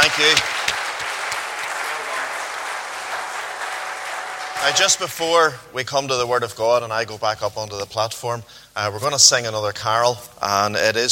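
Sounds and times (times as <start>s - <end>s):
audience applause: 0.0s - 5.6s
speech: 0.1s - 0.6s, 4.6s - 11.1s.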